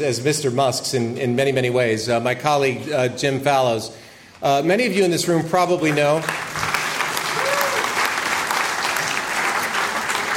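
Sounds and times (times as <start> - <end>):
speech: 0.0 - 6.6
audience applause: 5.8 - 10.3.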